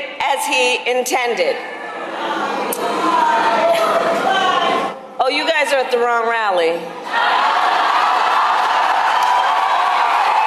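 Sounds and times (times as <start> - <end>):
speech: 0.4 - 4.2, 5.2 - 7.4
large crowd cheering and shouting at a rally: 1.6 - 5.0, 7.0 - 10.4.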